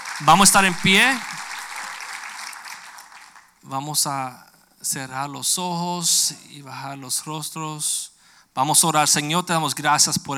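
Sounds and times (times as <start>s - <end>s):
audience applauding: 0.0s - 3.5s
speech: 0.2s - 1.3s, 3.7s - 10.3s.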